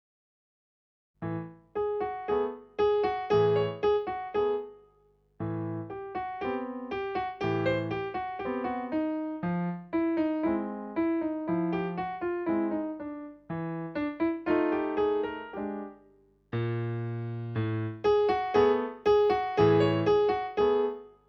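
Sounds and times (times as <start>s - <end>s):
piano: 1.2s - 21.2s.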